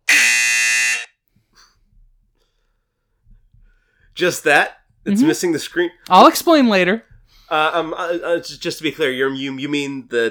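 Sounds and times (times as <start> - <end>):
game show buzzer: 0.1 - 1.1
speech: 4.2 - 10.2.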